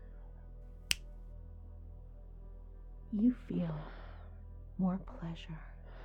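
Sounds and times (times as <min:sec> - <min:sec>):
faint low hum: 0:00.0 - 0:06.0
finger snap: 0:00.8 - 0:01.2
speech: 0:03.1 - 0:04.0, 0:04.8 - 0:05.7.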